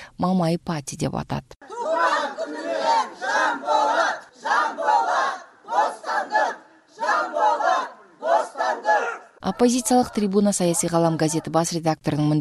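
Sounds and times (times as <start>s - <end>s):
speech: 0.2s - 6.5s, 9.4s - 12.3s
crowd outside a prison chanting a freedom slogan: 1.6s - 10.4s.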